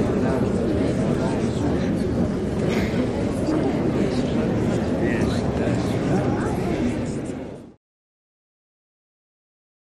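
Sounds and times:
stadium crowd buzz and murmurs: 0.0s - 7.8s.

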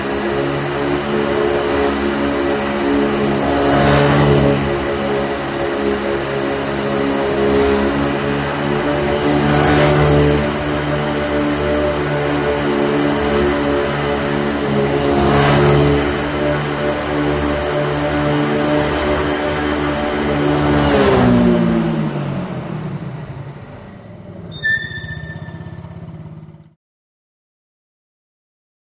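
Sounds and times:
Honda trike starting up: 0.0s - 26.8s
trike brake squeak: 24.3s - 26.3s.

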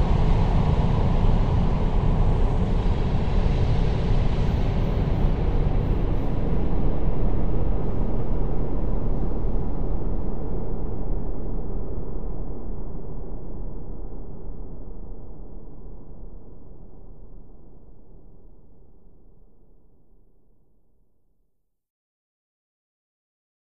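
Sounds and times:
heavy airy ambient wash: 0.0s - 13.2s.

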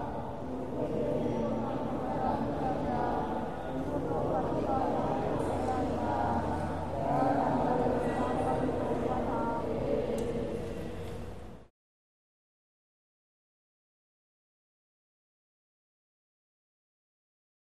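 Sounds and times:
large group of child novice Thai monks chanting in a large temple in Chiang Mai: 0.0s - 10.6s.

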